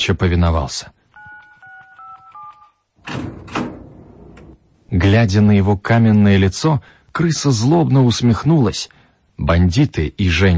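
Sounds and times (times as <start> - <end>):
speech: 0.0 - 1.0, 4.9 - 10.5
electronic keypad beeps as an access code is entered: 1.1 - 2.8.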